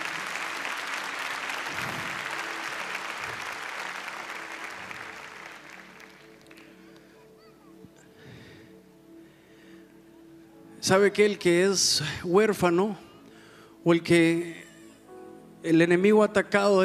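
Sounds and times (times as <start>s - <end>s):
audience applause: 0.0s - 7.2s
speech: 10.8s - 13.1s, 13.8s - 14.6s, 15.6s - 16.8s.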